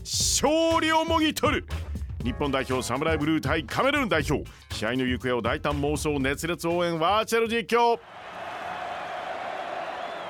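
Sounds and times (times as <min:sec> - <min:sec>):
speech: 0:00.4 - 0:08.2
stadium crowd cheering: 0:08.0 - 0:10.2.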